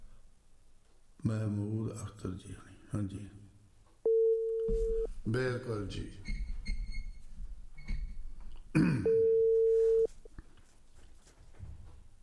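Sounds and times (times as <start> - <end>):
speech: 1.2 - 3.5, 4.7 - 6.4
telephone call tone beep: 4.1 - 5.1, 9.0 - 10.1.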